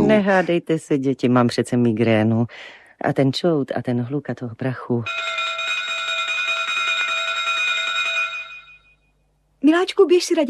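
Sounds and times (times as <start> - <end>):
speech: 0.1 - 5.5, 9.6 - 10.4
train station departure bell ringing: 5.1 - 9.1.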